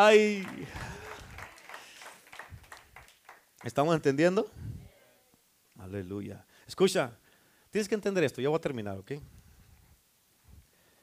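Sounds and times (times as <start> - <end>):
speech: 0.0 - 0.9, 3.6 - 4.7, 5.8 - 9.4
audience applause: 0.0 - 4.0.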